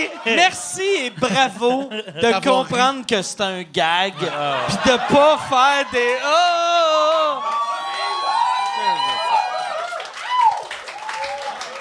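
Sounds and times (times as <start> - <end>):
laughter: 0.0 - 3.0, 3.8 - 7.8
speech: 0.0 - 7.5
crowd applauding: 6.9 - 11.7.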